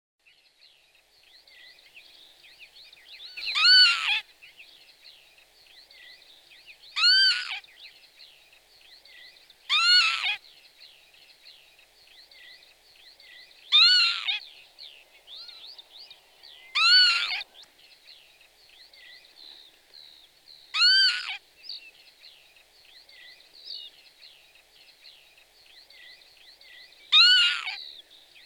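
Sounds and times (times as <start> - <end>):
Northern lapwing calls: 3.3 - 4.2, 7.0 - 7.6, 9.7 - 10.4, 13.7 - 14.5, 16.7 - 17.5, 20.7 - 21.4, 27.1 - 27.9.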